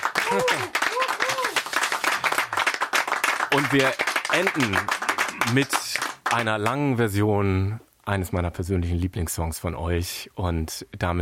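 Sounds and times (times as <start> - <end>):
audience applause: 0.0 - 6.8
speech: 3.5 - 11.2.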